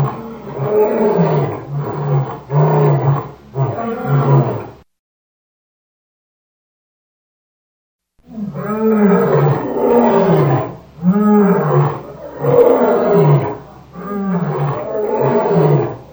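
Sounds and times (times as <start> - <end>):
lion roaring: 0.0 - 4.8, 8.3 - 16.1.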